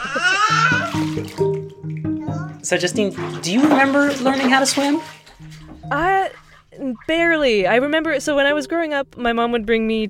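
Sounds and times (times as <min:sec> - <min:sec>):
young boy babbling and crying-like vocal sounds: 0:00.0 - 0:01.0, 0:02.2 - 0:02.6
water splashing in a bathtub at home: 0:00.0 - 0:08.5
speech: 0:02.7 - 0:05.2, 0:05.9 - 0:10.0.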